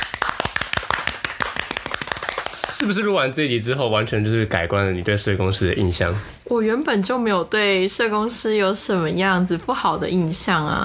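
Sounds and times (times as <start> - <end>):
hand clapping: 0.0 - 2.9
speech: 2.8 - 10.8.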